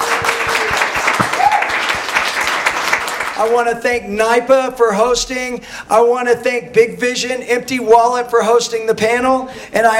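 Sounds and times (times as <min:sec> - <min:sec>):
audience applause: 0:00.0 - 0:03.4
speech: 0:03.4 - 0:09.9.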